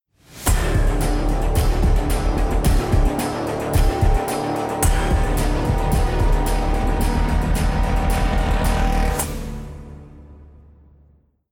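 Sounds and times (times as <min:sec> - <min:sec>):
music: 0:00.0 - 0:11.5.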